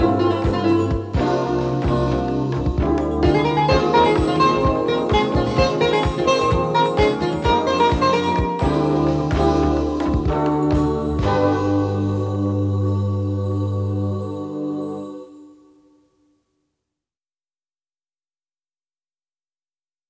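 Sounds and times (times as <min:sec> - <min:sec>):
jazz music: 0:00.0 - 0:15.0.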